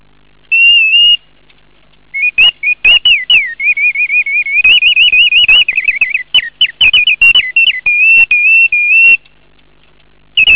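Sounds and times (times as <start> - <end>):
bird song: 2.2 - 9.2.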